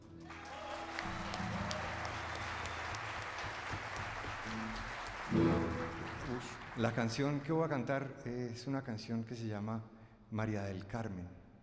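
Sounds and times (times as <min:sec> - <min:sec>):
audience applause: 0:00.2 - 0:07.7
speech: 0:06.4 - 0:11.4.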